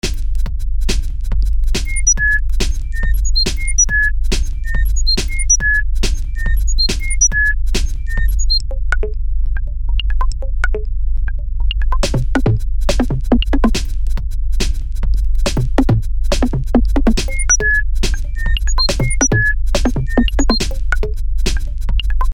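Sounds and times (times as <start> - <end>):
minimal drums: 0.0 - 22.3.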